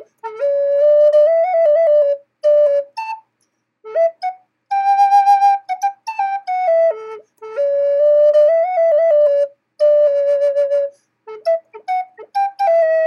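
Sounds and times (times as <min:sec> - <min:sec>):
natural flute playing: 0:00.0 - 0:13.0.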